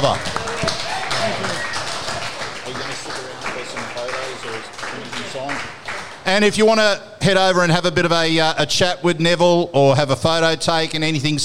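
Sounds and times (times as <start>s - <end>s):
speech: 0.0s - 1.8s, 2.7s - 11.4s
audience applause: 0.0s - 6.5s.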